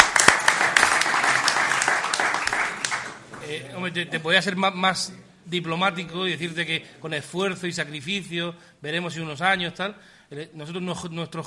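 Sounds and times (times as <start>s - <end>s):
audience applause: 0.0s - 3.4s
speech: 3.8s - 11.4s.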